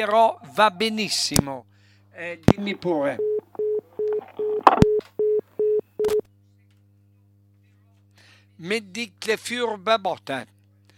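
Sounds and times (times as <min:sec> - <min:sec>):
speech: 0:00.0 - 0:03.3, 0:08.6 - 0:10.6
telephone line tone beeps: 0:03.1 - 0:06.2.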